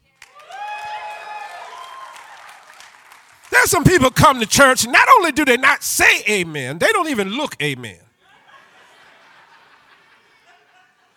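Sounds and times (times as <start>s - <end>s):
audience applause: 0.4s - 7.9s
speech: 3.6s - 8.0s.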